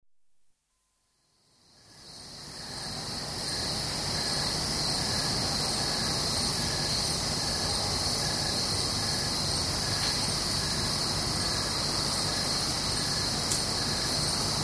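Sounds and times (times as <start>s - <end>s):
crickets chorus at night at Goldens Bridge, New York State: 1.4s - 14.6s.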